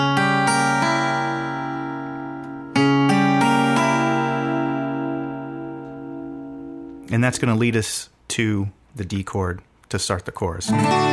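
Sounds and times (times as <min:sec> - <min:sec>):
C sharp diminished chord: 0:00.0 - 0:07.1, 0:10.7 - 0:11.1
speech: 0:07.1 - 0:11.1.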